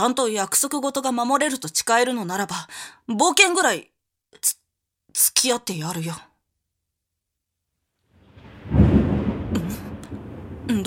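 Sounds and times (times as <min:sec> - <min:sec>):
speech: 0:00.0 - 0:06.3, 0:10.7 - 0:10.8
thunder of an approaching storm: 0:08.2 - 0:10.8.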